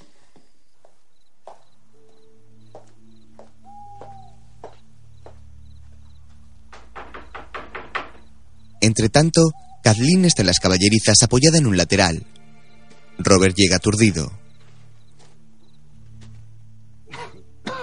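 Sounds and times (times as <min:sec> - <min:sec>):
soft sustained music: 0:00.0 - 0:17.8
knocking on a door on a dark street: 0:06.7 - 0:08.4
speech: 0:08.9 - 0:12.4, 0:13.2 - 0:14.4.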